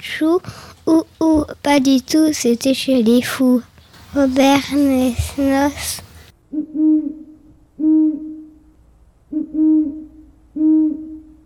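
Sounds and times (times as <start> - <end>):
speech: 0.0 - 6.0
owl hooting: 4.1 - 8.6, 9.3 - 11.4.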